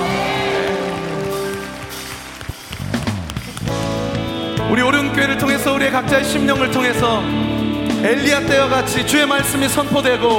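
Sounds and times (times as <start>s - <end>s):
audience applause: 0.0s - 4.3s
sustained instrumental music: 0.0s - 10.3s
speech: 5.1s - 10.3s.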